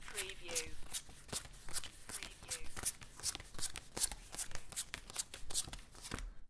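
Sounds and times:
playing cards dealt into one stack: 0.0s - 6.3s.

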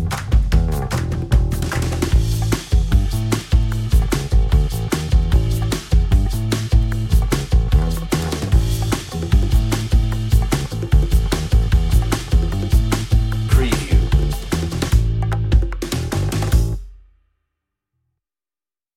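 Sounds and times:
brisk funny fight bass: 0.0s - 16.9s
brisk funny fight drums: 0.0s - 17.1s.

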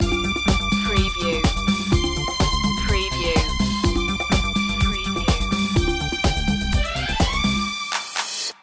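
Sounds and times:
disco loop: 0.0s - 8.5s.

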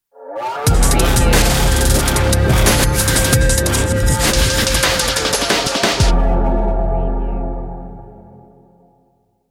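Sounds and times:
underground bass stinger: 0.7s - 8.2s.

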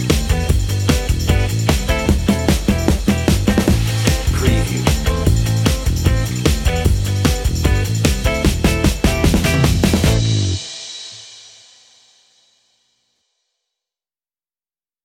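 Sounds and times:
underscore music without synths: 0.1s - 10.8s.

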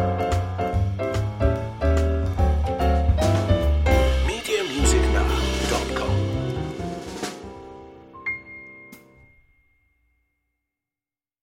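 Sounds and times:
jazz trio playing: 0.0s - 9.1s.

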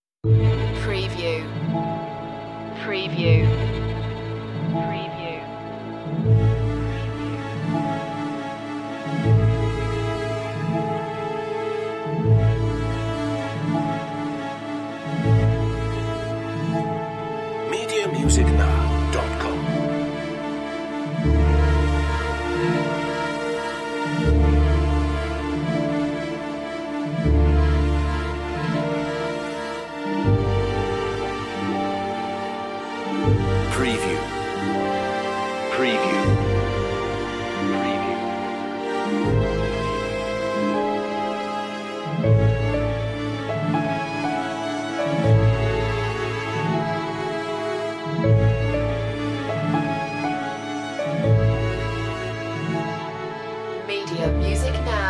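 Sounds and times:
waltz: 0.2s - 55.0s.

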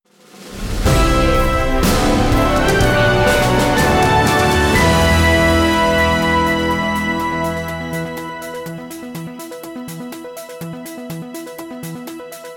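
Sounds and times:
news flash intro jingle: 0.5s - 9.6s.

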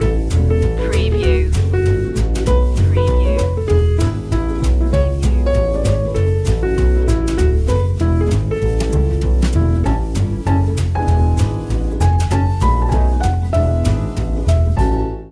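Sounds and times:
Christmas jazz music: 0.0s - 15.3s.

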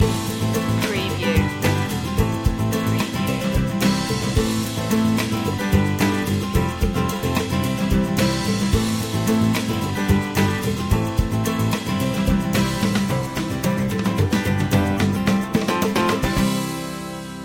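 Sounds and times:
simple happy music loop: 0.0s - 17.4s.

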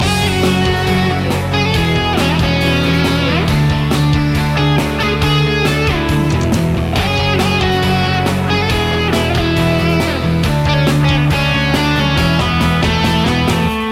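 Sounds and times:
encouraging music loop: 0.0s - 13.8s.

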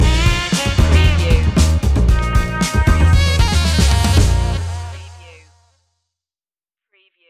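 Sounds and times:
funky jazzy music stinger: 0.0s - 4.9s.

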